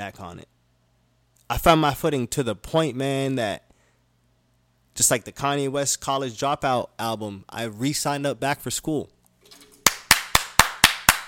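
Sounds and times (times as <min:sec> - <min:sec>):
speech: 0:00.0 - 0:00.6, 0:01.5 - 0:03.6, 0:05.0 - 0:09.6
one person clapping hands: 0:09.8 - 0:11.2.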